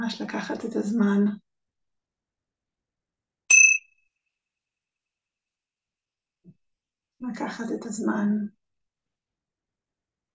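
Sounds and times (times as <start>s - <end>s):
speech: 0.0s - 1.4s, 7.2s - 8.6s
meditation bell ringing: 3.5s - 3.9s.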